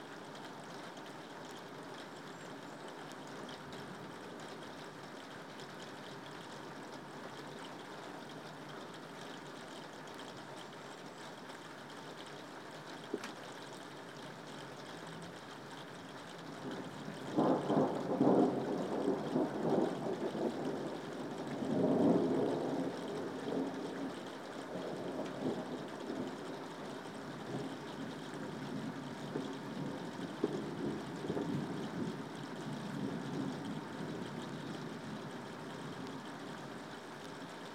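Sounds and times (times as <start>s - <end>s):
urban English thunderstorm: 16.7s - 26.7s, 27.4s - 36.0s.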